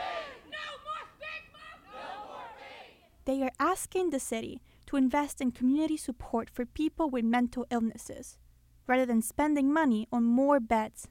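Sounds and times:
crowd shouting together: 0.0s - 3.1s
speech: 3.2s - 11.0s.

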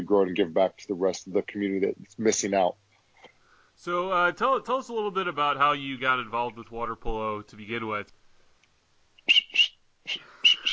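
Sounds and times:
speech: 0.1s - 2.8s, 3.8s - 8.2s, 10.1s - 10.3s
Fox 40 water polo whistle giving short shrill blasts: 9.2s - 10.7s.

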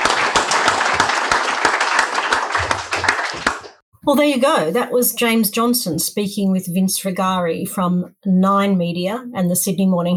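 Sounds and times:
audience applauding: 0.0s - 3.8s
speech: 4.0s - 10.1s.

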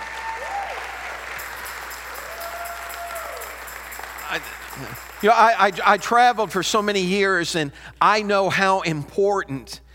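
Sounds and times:
audience applause: 0.0s - 6.6s
speech: 4.3s - 9.8s.

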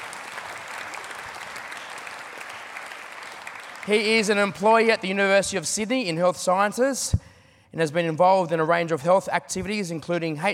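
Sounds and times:
audience clapping: 0.0s - 5.1s
speech: 3.9s - 10.5s.

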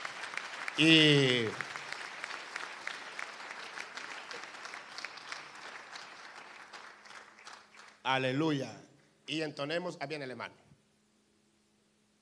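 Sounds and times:
audience applause: 0.0s - 8.0s
speech: 0.8s - 1.7s, 8.1s - 10.6s.

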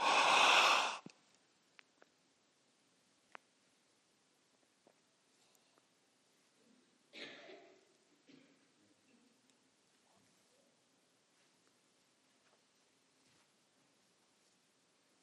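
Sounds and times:
congregation taking a deep breath: 0.0s - 1.0s.

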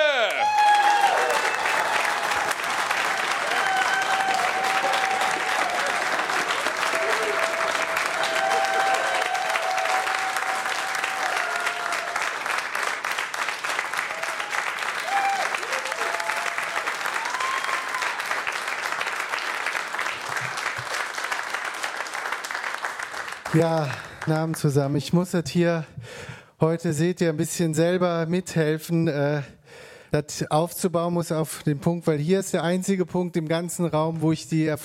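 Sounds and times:
audience applause: 0.0s - 24.6s
speech: 23.6s - 34.8s.

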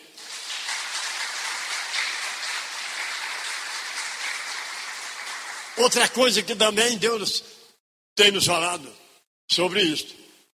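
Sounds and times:
crowd applauding: 0.0s - 6.5s
speech: 5.8s - 7.6s, 8.2s - 10.2s.

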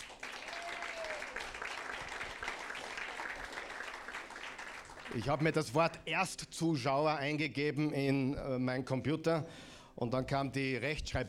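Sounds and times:
crowd applauding: 0.0s - 5.6s
speech: 5.1s - 11.2s.

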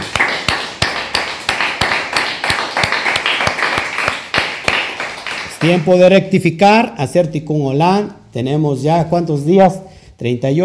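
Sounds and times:
applause: 0.0s - 5.9s
speech: 5.6s - 10.6s.

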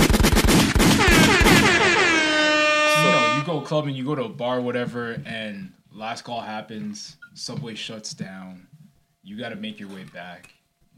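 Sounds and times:
rapid volley of gunshot sound effect: 0.0s - 2.4s
sustained blaring horn-like tone: 1.0s - 3.9s
speech: 3.7s - 10.9s.

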